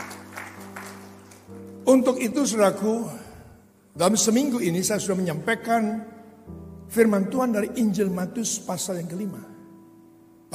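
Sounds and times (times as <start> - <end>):
audience applause: 0.0 - 1.6
speech: 1.9 - 3.2, 4.0 - 9.5.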